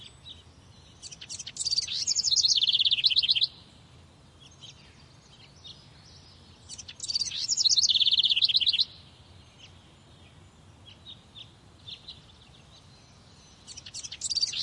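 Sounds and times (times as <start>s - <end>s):
faint chirps: 0.0s - 14.6s
low background noise: 0.0s - 14.6s
bird high trills: 1.0s - 3.6s, 6.7s - 9.0s.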